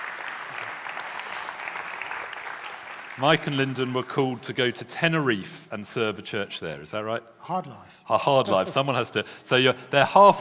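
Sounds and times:
audience applause: 0.0s - 4.4s
speech: 3.2s - 10.3s.

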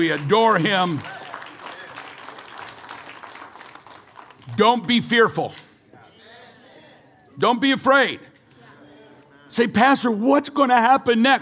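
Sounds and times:
speech: 0.0s - 1.2s, 4.5s - 5.6s, 7.4s - 8.3s, 9.5s - 11.3s
audience applause: 0.0s - 4.7s.

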